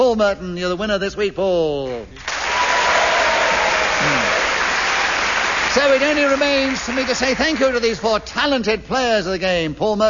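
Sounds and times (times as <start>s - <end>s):
speech: 0.0s - 2.4s, 4.0s - 4.4s, 5.8s - 10.0s
audience applause: 2.2s - 8.0s.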